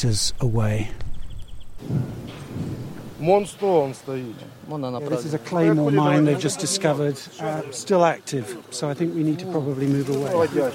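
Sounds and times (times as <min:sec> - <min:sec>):
speech: 0:00.0 - 0:01.1, 0:01.8 - 0:10.7
distant artillery fire explosions: 0:01.0 - 0:03.5.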